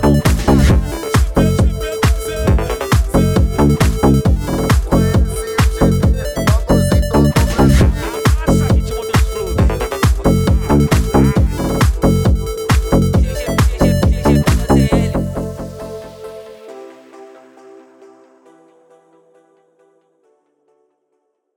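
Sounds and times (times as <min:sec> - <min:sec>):
mega funk music: 0:00.0 - 0:16.4.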